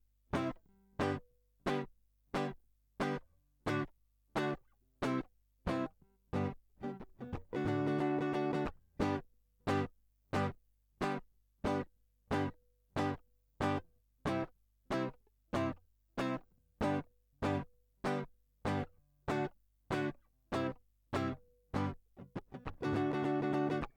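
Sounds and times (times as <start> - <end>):
rock and roll guitar line: 0.4 - 23.9.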